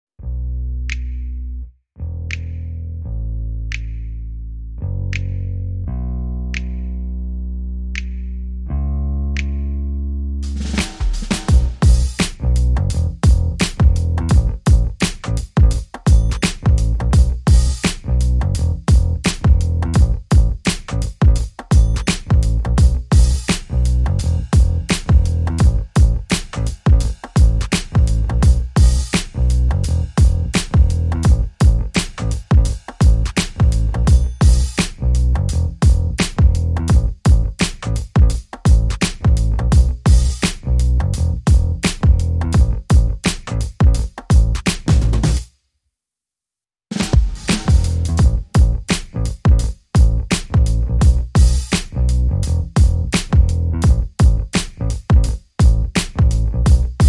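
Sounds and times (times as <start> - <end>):
bass: 0.0 - 45.5, 46.9 - 57.0
drums: 10.4 - 45.5, 46.9 - 57.0.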